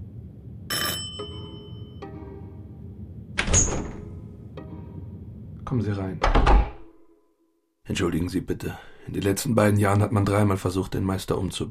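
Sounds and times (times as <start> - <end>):
doorbell ringing: 0.7 - 2.2
speech: 5.7 - 6.6, 7.9 - 11.6.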